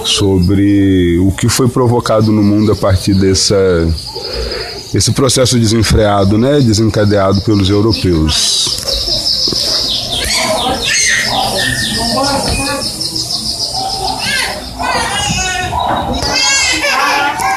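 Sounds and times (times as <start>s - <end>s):
birds chirping: 0.0s - 17.5s
children talking: 0.0s - 17.5s
speech: 0.1s - 9.8s.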